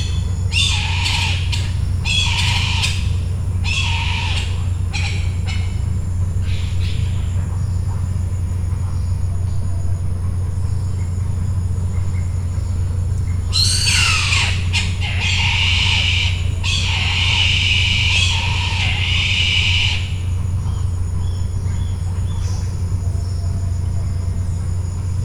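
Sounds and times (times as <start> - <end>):
bird squawking: 0.0 - 7.4, 13.5 - 20.4
low hum: 0.0 - 25.2.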